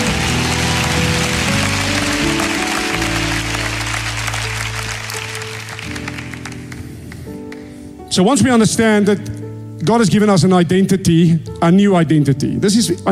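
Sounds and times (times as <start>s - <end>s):
church congregation applauding a speaker during a televised service: 0.0s - 7.7s
held musical chords: 0.0s - 8.1s
speech: 8.2s - 13.1s.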